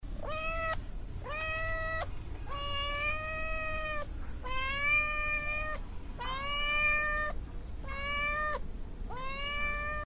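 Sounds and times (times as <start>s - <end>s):
cat meowing: 0.2s - 10.0s.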